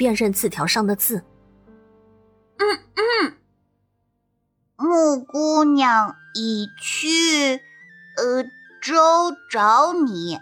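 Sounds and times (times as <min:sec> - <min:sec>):
speech: 0:00.0 - 0:01.3, 0:02.6 - 0:03.4, 0:04.8 - 0:10.4
person clearing throat: 0:02.6 - 0:03.4.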